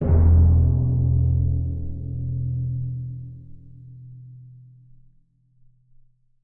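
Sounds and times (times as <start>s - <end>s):
timpani vamp: 0.0s - 3.4s.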